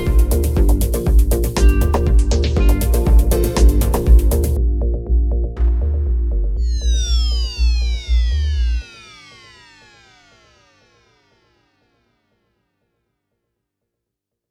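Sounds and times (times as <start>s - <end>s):
heavy bass at 120 BPM: 0.0s - 9.1s.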